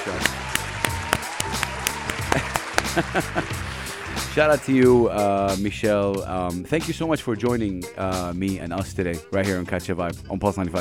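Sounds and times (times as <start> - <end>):
cheering for guest: 0.0 - 4.8
applause and cheering for guest: 0.2 - 4.8
speech: 2.3 - 3.7, 4.4 - 10.8
laughter: 2.3 - 3.8.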